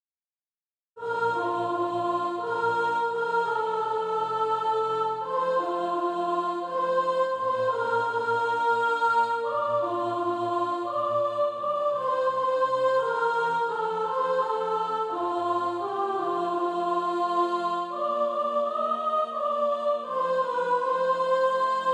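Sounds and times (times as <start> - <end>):
soprano singing: 1.0 - 21.9.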